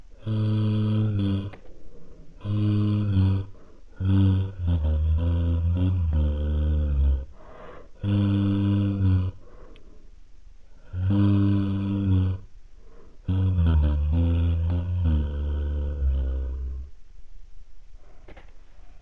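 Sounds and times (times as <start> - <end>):
creepy man singing la la la: 0.2 - 1.6, 2.4 - 7.3, 8.0 - 9.4, 10.8 - 12.5, 13.3 - 16.9.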